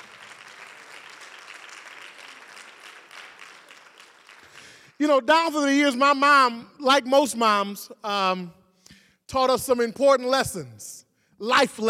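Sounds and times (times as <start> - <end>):
audience applause for the mothers: 0.0 - 4.9
speech: 5.0 - 8.6, 9.3 - 11.8.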